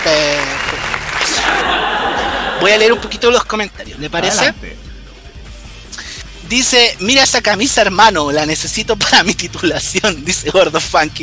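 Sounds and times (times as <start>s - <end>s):
audience applause: 0.0s - 3.2s
laughter: 1.2s - 4.6s
speech: 2.6s - 4.8s, 6.5s - 11.2s.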